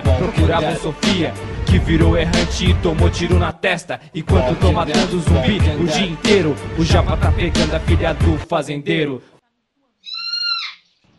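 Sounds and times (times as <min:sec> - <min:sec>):
speech: 0:00.2 - 0:09.3
pet parrot squawking after waking: 0:10.0 - 0:11.0.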